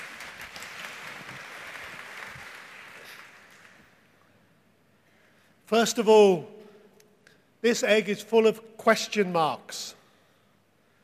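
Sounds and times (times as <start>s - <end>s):
audience clapping: 0.0s - 4.3s
speech: 5.7s - 6.6s, 7.6s - 10.0s.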